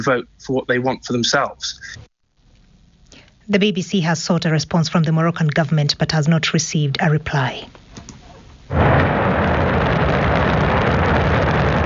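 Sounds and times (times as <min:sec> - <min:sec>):
speech: 0:00.0 - 0:02.1, 0:03.5 - 0:07.8, 0:08.7 - 0:09.2
Shenzhou 23 rocket blasting off from the launch center in Inner Mongolia: 0:08.7 - 0:11.8.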